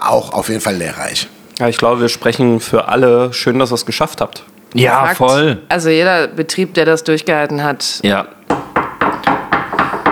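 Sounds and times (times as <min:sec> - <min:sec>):
speech: 0:00.1 - 0:08.4
knocking on wood: 0:08.5 - 0:10.1.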